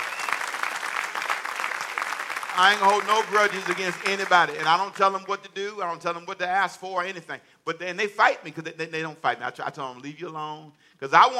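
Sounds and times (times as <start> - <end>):
audience clapping: 0.0 - 5.3
speech: 2.6 - 11.3.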